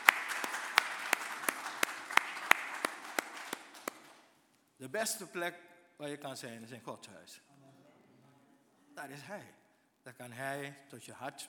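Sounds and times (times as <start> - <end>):
audience applause: 0.0 - 4.3
speech: 4.8 - 7.5, 9.0 - 11.4.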